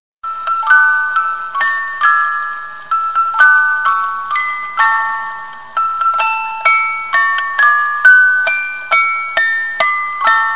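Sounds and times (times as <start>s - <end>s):
music box playing a birthday song: 0.2s - 10.5s.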